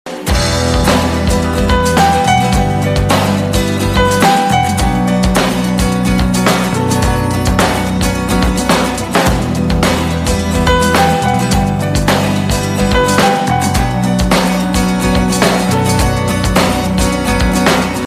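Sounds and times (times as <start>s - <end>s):
instrumental music: 0.1s - 18.0s.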